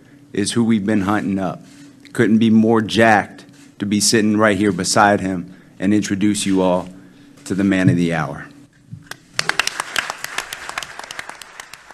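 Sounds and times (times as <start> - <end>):
speech: 0.3 - 8.5
group clapping at press conference: 9.0 - 11.9.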